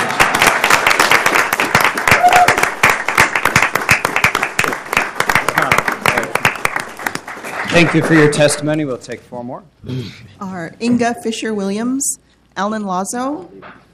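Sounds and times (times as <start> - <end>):
round of applause: 0.0 - 8.4
speech: 7.8 - 13.9.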